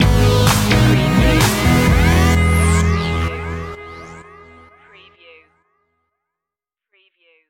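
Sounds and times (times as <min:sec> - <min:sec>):
robo-disco stinger: 0:00.0 - 0:04.7.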